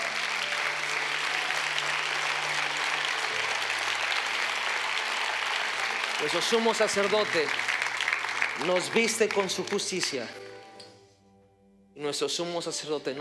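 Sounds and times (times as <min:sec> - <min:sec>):
audience applauding loudly: 0:00.0 - 0:10.4
speech: 0:06.2 - 0:07.7, 0:08.6 - 0:10.4, 0:12.0 - 0:13.1.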